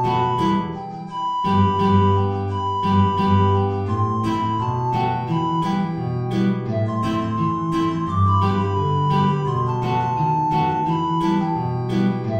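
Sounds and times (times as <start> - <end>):
alto flute playing high notes: 0.0 - 12.3
guitar: 0.0 - 12.3.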